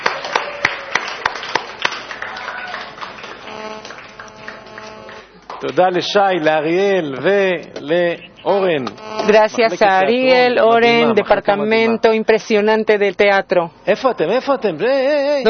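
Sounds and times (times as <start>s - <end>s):
audience applause: 0.0s - 5.7s
speech: 5.6s - 15.4s.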